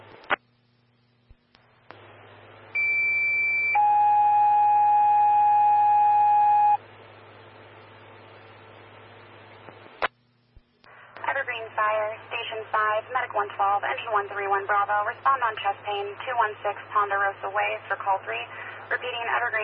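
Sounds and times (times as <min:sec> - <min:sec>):
radio hiss and hum: 0:00.0 - 0:02.7, 0:06.8 - 0:19.6
sequential two-tone fire dispatch alert: 0:02.8 - 0:06.8
speech: 0:14.0 - 0:19.6.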